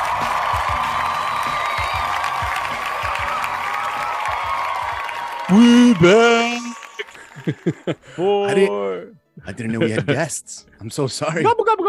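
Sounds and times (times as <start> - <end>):
whoops: 0.0 - 7.2
crowd cheer with applause sound effect from a soundboard: 0.0 - 8.2
speech: 5.5 - 6.5, 7.4 - 11.8
laughter: 5.5 - 8.4, 9.6 - 10.3.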